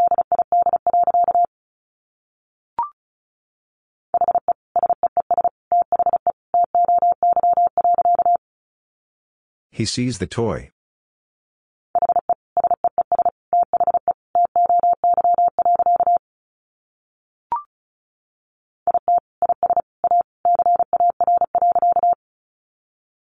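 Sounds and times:
Morse code beeps at 35 wpm: 0:00.0 - 0:01.5, 0:04.2 - 0:08.4, 0:12.0 - 0:16.2, 0:18.9 - 0:22.2
speech: 0:09.8 - 0:10.8.

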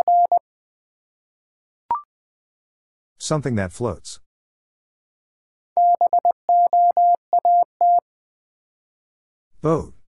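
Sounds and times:
Morse code tones at 20 words per minute: 0:00.0 - 0:00.4, 0:05.8 - 0:08.0
speech: 0:03.2 - 0:04.2, 0:09.6 - 0:10.0.

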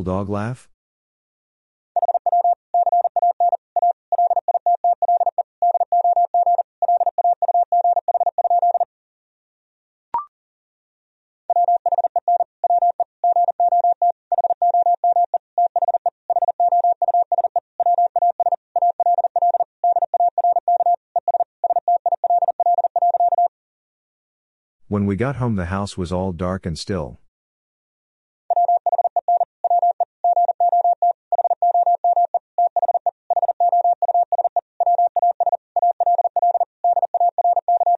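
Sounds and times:
speech: 0:00.0 - 0:00.7, 0:25.0 - 0:27.2
fast Morse code tones: 0:02.0 - 0:08.9, 0:11.5 - 0:23.5, 0:28.5 - 0:37.9.

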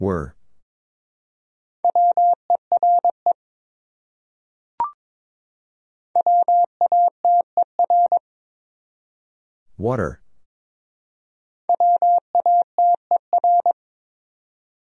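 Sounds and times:
speech: 0:00.0 - 0:00.4, 0:09.8 - 0:10.2
Morse code beeps at about 22 words per minute: 0:01.9 - 0:03.2, 0:06.2 - 0:08.2, 0:11.7 - 0:13.8.

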